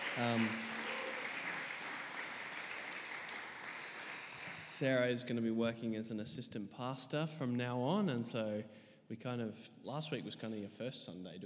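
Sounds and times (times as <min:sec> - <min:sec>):
audience applause: 0:00.0 - 0:04.8
speech: 0:00.2 - 0:00.8, 0:04.8 - 0:11.4.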